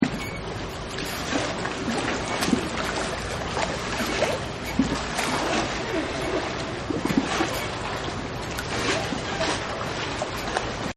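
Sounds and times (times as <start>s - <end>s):
boats creaking: 0.0s - 10.9s.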